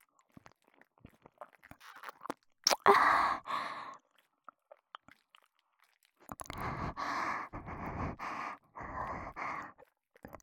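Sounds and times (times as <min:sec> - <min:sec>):
ear licking: 0:00.4 - 0:08.4.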